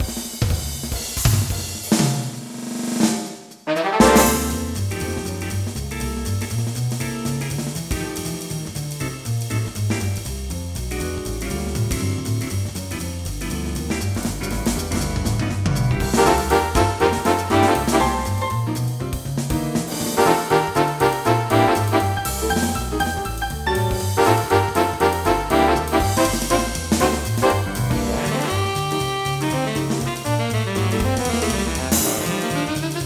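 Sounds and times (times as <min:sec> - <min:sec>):
swing music: 0:00.0 - 0:33.0.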